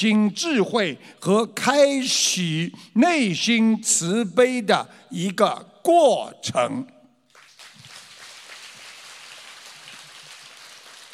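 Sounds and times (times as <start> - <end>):
speech: 0.0 - 7.0
sparse scattered applause from a small audience: 7.3 - 11.1.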